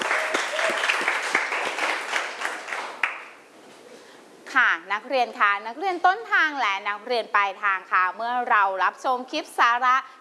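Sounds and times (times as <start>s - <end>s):
group applause: 0.0s - 3.4s
speech: 4.8s - 10.1s.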